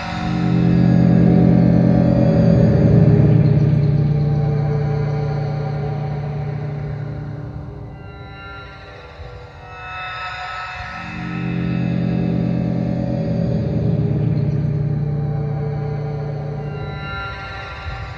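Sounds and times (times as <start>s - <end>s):
mangled electronic guitar: 0.1s - 8.2s, 11.3s - 17.5s.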